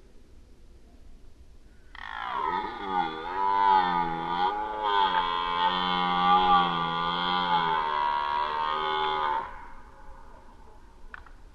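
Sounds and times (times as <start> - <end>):
red deer roaring during the rut: 1.9 - 10.9.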